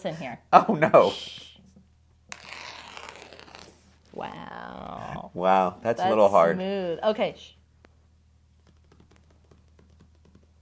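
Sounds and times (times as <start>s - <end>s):
speech: 0.0s - 1.5s, 4.2s - 7.6s
page being torn out of a book: 2.3s - 4.1s.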